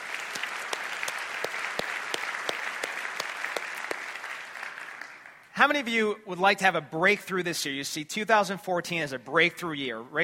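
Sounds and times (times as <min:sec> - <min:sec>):
audience applause: 0:00.0 - 0:05.5
speech: 0:05.6 - 0:10.2.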